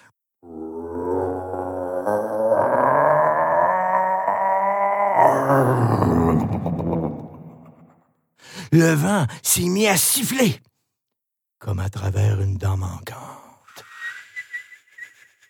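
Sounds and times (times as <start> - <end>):
inhuman rumbling growl from the earth: 0.4 - 7.4
speech: 5.8 - 7.3, 8.7 - 10.7, 11.6 - 13.2.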